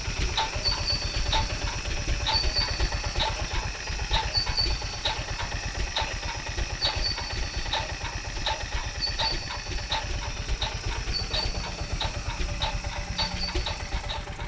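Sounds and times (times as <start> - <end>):
rhythms at different speeds: 0.3 - 14.4.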